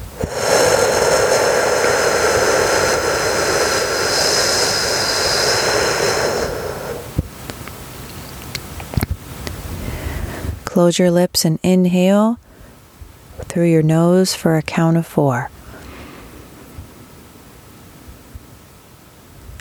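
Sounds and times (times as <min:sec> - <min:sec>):
whooshing exhale through the mouth: 0:00.0 - 0:07.2, 0:09.8 - 0:10.6, 0:15.6 - 0:16.7
speech: 0:10.8 - 0:12.4, 0:13.5 - 0:15.6.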